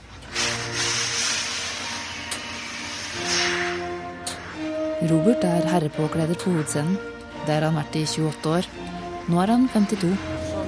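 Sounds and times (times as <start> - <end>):
steam iron hissing over a shirt: 0.2 - 4.7
speech: 5.0 - 10.4.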